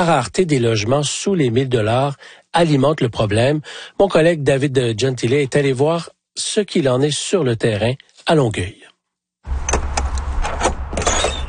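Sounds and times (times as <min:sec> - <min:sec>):
speech: 0:00.0 - 0:08.8
door of a small trailer being opened: 0:09.5 - 0:11.4.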